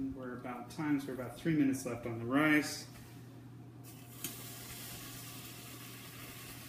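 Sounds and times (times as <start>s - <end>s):
speech: 0.4s - 3.0s
catfish frying in olive oil in a pan: 3.9s - 6.6s.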